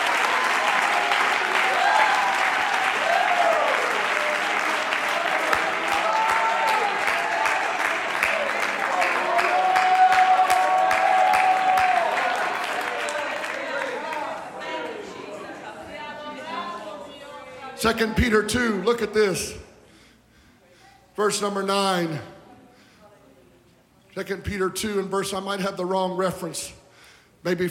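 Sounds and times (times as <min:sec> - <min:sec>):
audience clapping: 0:00.0 - 0:15.0
scattered shouts and cheering voices: 0:00.0 - 0:15.4
speech: 0:17.8 - 0:19.6, 0:21.2 - 0:22.3, 0:24.2 - 0:26.8, 0:27.4 - 0:27.6.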